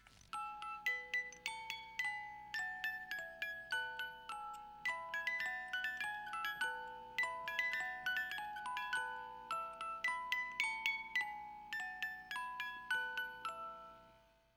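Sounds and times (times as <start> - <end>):
twinkle sound: 0.3 - 14.3.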